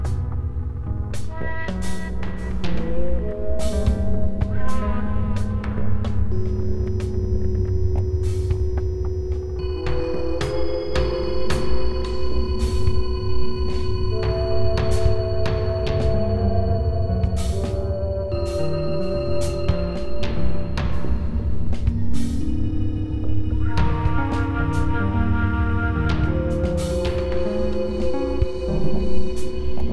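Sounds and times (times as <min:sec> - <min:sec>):
slow free atonal music: 0:00.0 - 0:29.9.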